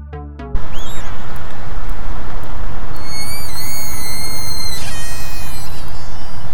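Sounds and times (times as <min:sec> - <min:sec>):
slowed-down orca whistles: 0:00.6 - 0:01.2, 0:02.9 - 0:06.5
clicking burst: 0:00.6 - 0:06.5.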